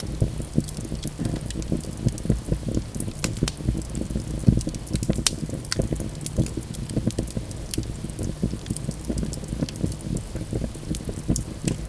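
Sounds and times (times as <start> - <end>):
fire: 0.0 - 11.8.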